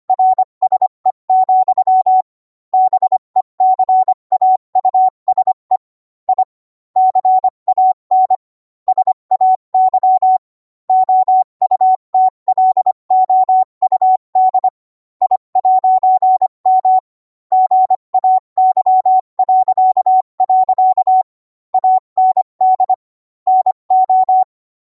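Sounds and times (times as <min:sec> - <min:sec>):
Morse code beeps: 0:00.1 - 0:24.6.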